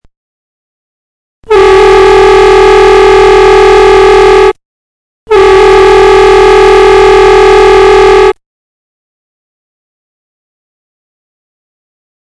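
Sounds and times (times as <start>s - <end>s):
horns playing: 1.5s - 4.6s, 5.3s - 8.4s.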